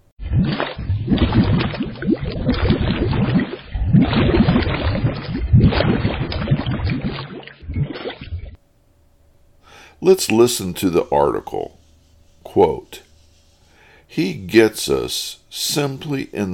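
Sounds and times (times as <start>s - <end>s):
water sloshing and churning: 0.2s - 8.6s
speech: 10.0s - 11.8s, 12.5s - 13.0s, 14.1s - 16.5s.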